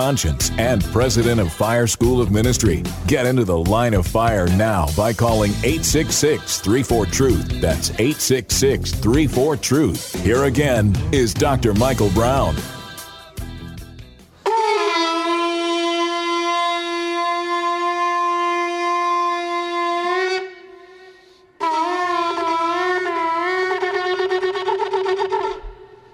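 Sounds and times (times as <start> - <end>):
speech: 0.0 - 12.8
shofar blasts at the Western Wall on Israeli Independence Day: 14.4 - 26.0.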